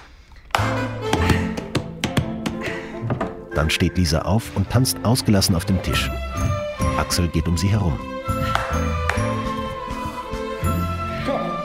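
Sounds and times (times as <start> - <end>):
hand claps: 0.0 - 2.8, 8.3 - 10.6
hands slapping thighs: 0.5 - 3.3, 8.3 - 10.7
speech: 3.6 - 9.0.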